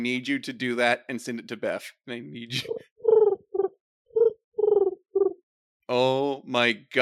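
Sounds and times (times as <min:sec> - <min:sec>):
speech: 0:00.0 - 0:02.9, 0:05.9 - 0:07.0
person imitating a wood pigeon call: 0:02.5 - 0:05.4.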